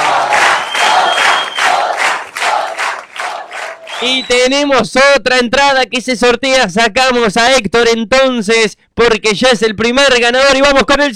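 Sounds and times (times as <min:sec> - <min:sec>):
audience applause: 0:00.0 - 0:04.4
speech: 0:04.0 - 0:11.1.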